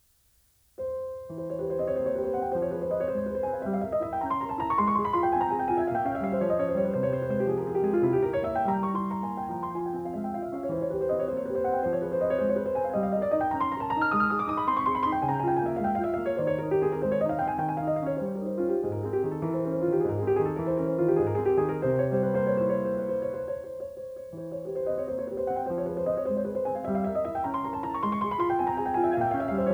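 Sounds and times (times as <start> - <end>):
piano etude in F minor: 0.8 - 29.7.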